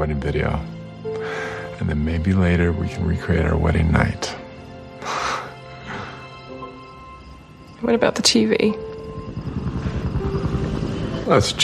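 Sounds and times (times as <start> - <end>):
speech: 0.0 - 4.4, 7.8 - 8.9, 11.3 - 11.6
distant helicopter: 7.0 - 11.6.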